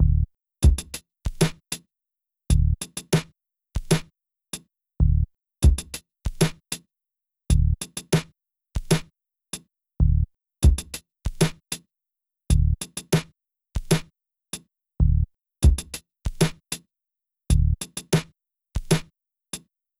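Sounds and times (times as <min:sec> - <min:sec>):
drums at 96 bpm: 0:00.1 - 0:01.8, 0:02.5 - 0:04.1, 0:05.0 - 0:06.8, 0:07.5 - 0:09.1, 0:10.0 - 0:11.8, 0:12.5 - 0:14.1, 0:15.0 - 0:16.8, 0:17.5 - 0:19.1.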